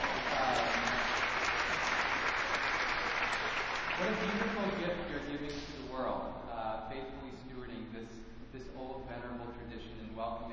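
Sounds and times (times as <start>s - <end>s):
church congregation clapping: 0.0s - 5.7s
speech: 4.0s - 10.5s.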